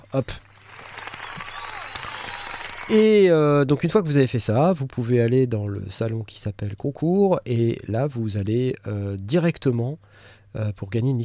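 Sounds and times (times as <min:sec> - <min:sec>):
applause: 0:00.0 - 0:03.4
speech: 0:00.1 - 0:00.4, 0:02.9 - 0:11.2.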